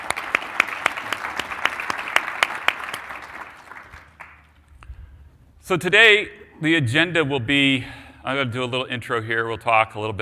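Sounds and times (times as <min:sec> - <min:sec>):
audience applause: 0:00.0 - 0:04.6
speech: 0:05.7 - 0:10.2.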